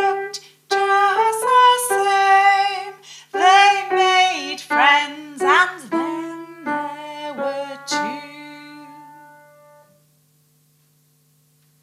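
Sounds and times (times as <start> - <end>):
vocals: 0.0 - 9.2.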